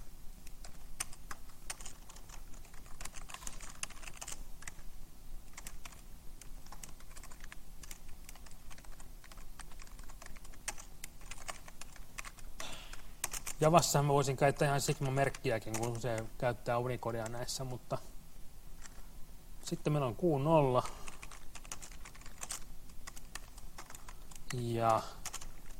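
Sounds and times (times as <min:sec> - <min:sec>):
typing Java-like pseudocode on a computer keyboard: 0:00.4 - 0:04.8, 0:05.5 - 0:13.6, 0:14.9 - 0:16.3, 0:21.0 - 0:25.7
speech: 0:13.6 - 0:18.1, 0:19.7 - 0:21.0, 0:24.6 - 0:25.2.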